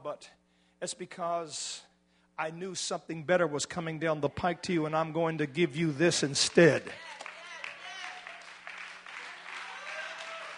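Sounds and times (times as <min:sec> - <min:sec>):
speech: 0:00.1 - 0:07.1
audience clapping hands: 0:06.4 - 0:10.5.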